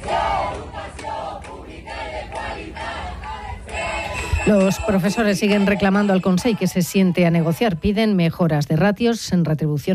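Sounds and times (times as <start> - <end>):
protesting teachers chanting slogans: 0.0 - 7.4
speech: 4.4 - 9.9.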